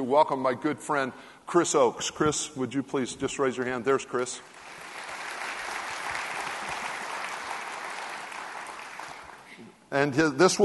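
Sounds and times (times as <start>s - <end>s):
speech: 0.0s - 4.6s, 9.9s - 10.6s
audience applause: 4.5s - 9.6s.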